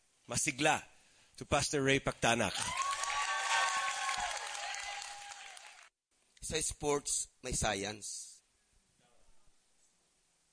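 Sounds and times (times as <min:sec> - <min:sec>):
speech: 0:00.3 - 0:02.8, 0:06.5 - 0:08.3
church congregation applauding in welcome: 0:02.5 - 0:05.9.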